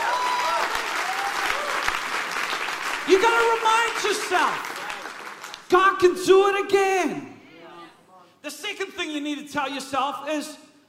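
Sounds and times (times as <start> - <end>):
audience clapping: 0.0 - 5.9
speech: 3.1 - 4.7, 5.7 - 7.3, 8.4 - 10.6.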